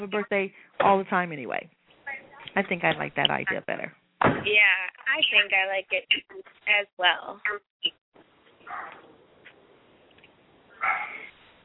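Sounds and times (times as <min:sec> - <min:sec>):
speech: 0:00.0 - 0:01.8, 0:02.6 - 0:08.0
small dog yipping: 0:08.6 - 0:09.0, 0:10.8 - 0:11.3.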